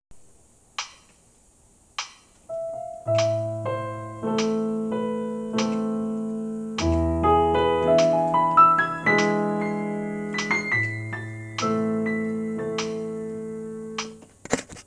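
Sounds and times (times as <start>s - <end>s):
piano waltz in A minor: 2.5s - 14.2s.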